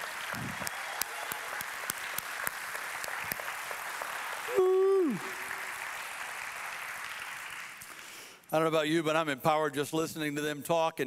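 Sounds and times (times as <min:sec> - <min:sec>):
large audience applauding: 0:00.0 - 0:08.4
falling whistle or whoop: 0:04.5 - 0:05.4
speech: 0:08.5 - 0:11.0.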